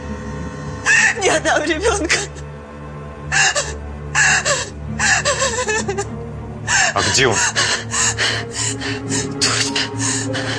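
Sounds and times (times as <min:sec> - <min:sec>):
woman in labor gasping and moaning from contractions: 0:00.8 - 0:01.3, 0:03.3 - 0:10.5
speech: 0:01.2 - 0:02.4, 0:07.2 - 0:08.0.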